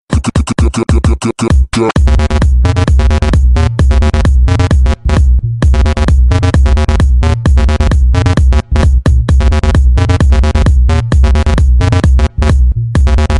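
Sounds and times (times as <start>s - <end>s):
tribal music: 0.1s - 13.3s.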